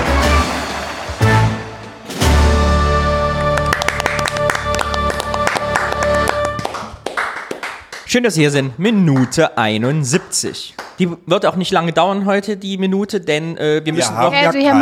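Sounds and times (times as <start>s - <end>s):
audience applause: 0.0s - 2.1s, 3.2s - 8.0s
speech: 8.2s - 14.7s.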